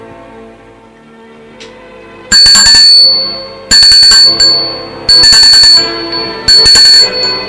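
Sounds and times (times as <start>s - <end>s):
doorbell ringing: 2.3s - 7.4s.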